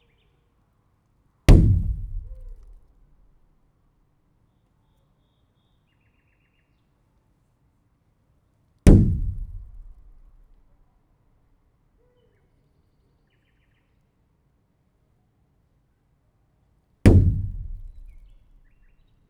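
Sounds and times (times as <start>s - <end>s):
kick against a plastic pool: 1.5s - 2.9s, 8.9s - 10.5s, 17.1s - 18.6s.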